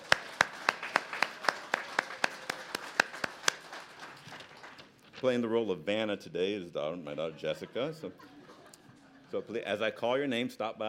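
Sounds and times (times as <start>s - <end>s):
audience applause: 0.0s - 5.0s
speech: 5.2s - 8.3s, 9.3s - 10.8s
laughter: 7.1s - 9.8s.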